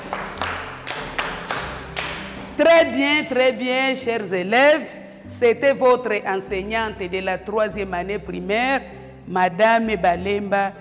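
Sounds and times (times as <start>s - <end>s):
schoolchildren in a primary-school class clapping: 0.0s - 2.5s
speech: 2.6s - 10.7s.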